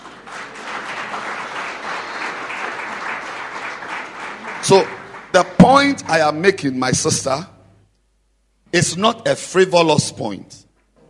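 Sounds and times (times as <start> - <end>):
audience clapping hands: 0.0 - 6.3
speech: 4.6 - 7.5, 8.7 - 10.6.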